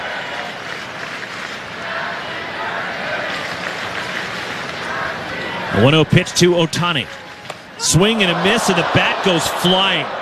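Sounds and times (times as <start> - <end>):
stadium crowd chanting a birthday song: 1.8 - 3.6, 4.8 - 6.4
speech: 5.8 - 7.2, 7.8 - 10.1.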